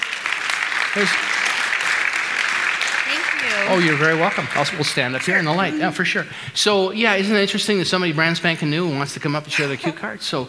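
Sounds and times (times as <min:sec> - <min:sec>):
audience applause: 0:00.0 - 0:06.4
speech: 0:01.0 - 0:01.4, 0:03.4 - 0:10.4
laughter: 0:03.4 - 0:07.6, 0:09.2 - 0:10.4.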